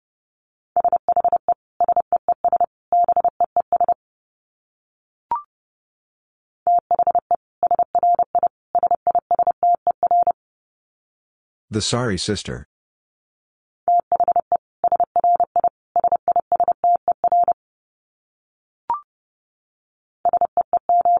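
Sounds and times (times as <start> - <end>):
Morse code tones at 30 wpm: 0.8 - 4.0, 6.7 - 10.4, 13.9 - 17.6, 20.3 - 21.1
speech: 11.7 - 12.7.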